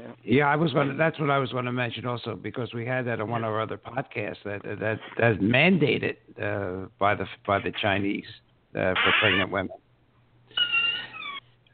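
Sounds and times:
speech: 0:00.3 - 0:09.8
creaking door being closed: 0:09.0 - 0:09.5, 0:10.6 - 0:11.5.

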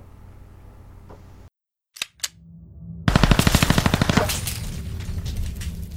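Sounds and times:
ghost gun clicks: 0:01.9 - 0:02.3
rapid gunfire from a ghost gun with a 30-round magazine: 0:03.1 - 0:05.7.

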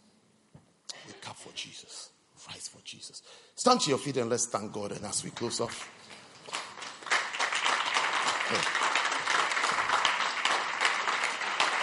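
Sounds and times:
speech: 0:01.4 - 0:06.6, 0:08.5 - 0:08.8
church congregation clapping in praise: 0:05.2 - 0:11.8.

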